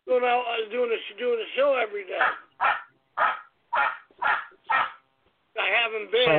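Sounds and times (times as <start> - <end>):
speech: 0.2 - 2.8
dog barking: 2.2 - 5.0.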